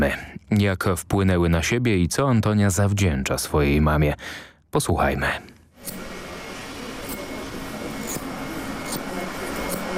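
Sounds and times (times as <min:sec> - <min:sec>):
speech: 0:00.0 - 0:06.0
Damascus steel scissors cutting: 0:05.8 - 0:06.1, 0:07.9 - 0:09.9.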